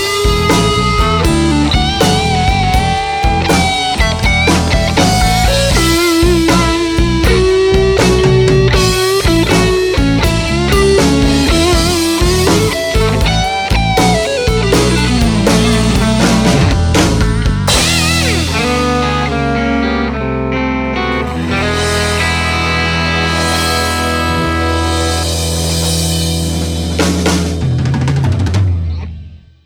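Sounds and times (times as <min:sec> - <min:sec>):
grooving blues rock instrumental: 0:00.0 - 0:29.5.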